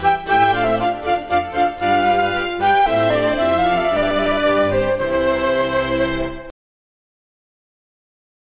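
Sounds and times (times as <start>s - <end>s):
baroque orchestral air: 0.0s - 6.5s.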